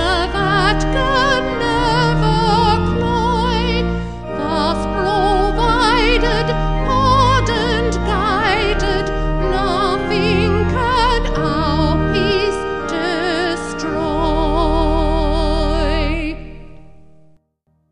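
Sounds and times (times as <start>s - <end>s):
vocal organ: 0.0s - 17.2s.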